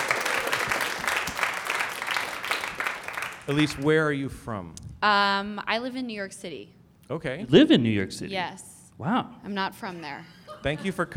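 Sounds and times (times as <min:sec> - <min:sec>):
audience applause: 0:00.0 - 0:03.9
speech: 0:03.5 - 0:11.1.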